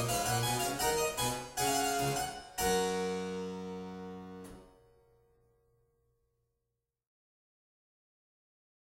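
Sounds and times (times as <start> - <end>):
gavotte in G: 0.0 - 4.8.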